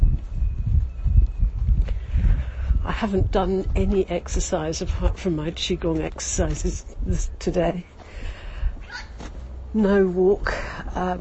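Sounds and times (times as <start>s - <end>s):
wind blowing hard across the microphone: 0.0s - 9.6s
speech: 2.9s - 7.9s, 9.7s - 11.1s.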